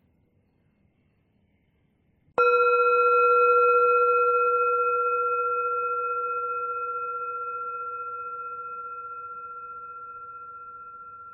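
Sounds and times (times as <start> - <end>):
meditation bell ringing: 2.4 - 11.3.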